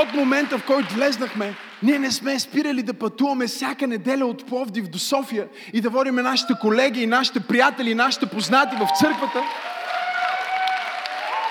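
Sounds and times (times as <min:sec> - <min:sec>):
audience applauding: 0:00.0 - 0:02.2, 0:08.0 - 0:11.4
speech: 0:00.0 - 0:09.8.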